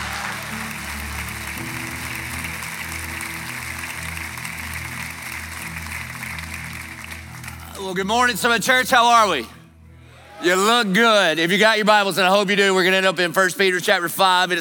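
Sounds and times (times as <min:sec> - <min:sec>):
church congregation applauding to welcome a pastor: 0:00.0 - 0:09.4
speech: 0:07.8 - 0:09.6, 0:10.4 - 0:14.6.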